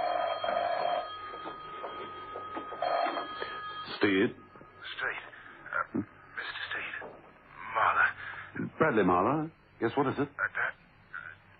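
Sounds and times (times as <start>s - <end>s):
telephone ringing: 0.0s - 7.1s
speech: 4.0s - 5.2s, 5.9s - 6.2s, 8.8s - 10.4s.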